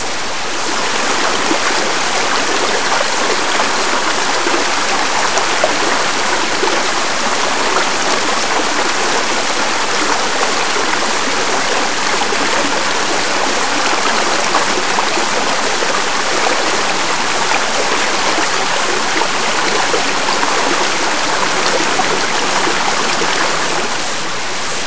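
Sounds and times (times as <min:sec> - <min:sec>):
water: 0:00.0 - 0:24.8.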